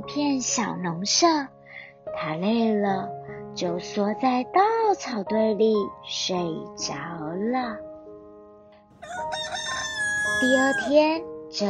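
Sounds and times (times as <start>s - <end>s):
speech: 0.0s - 7.9s, 10.4s - 11.6s
rooster crowing: 9.0s - 11.0s.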